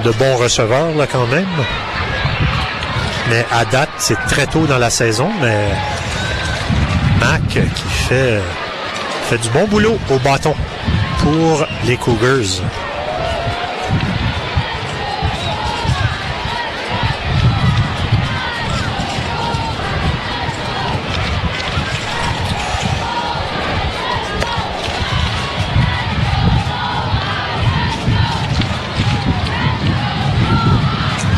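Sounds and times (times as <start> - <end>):
speech: 0.0 - 2.6, 3.3 - 6.1, 7.2 - 8.6, 9.3 - 12.9
stadium crowd cheering: 0.0 - 31.3.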